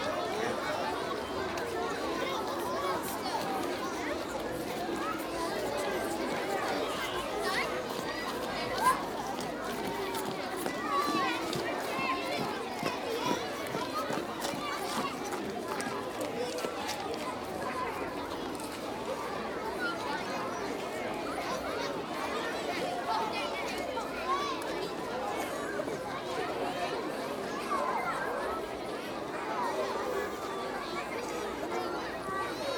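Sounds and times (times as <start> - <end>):
crowd of children outdoors: 0.0 - 32.7.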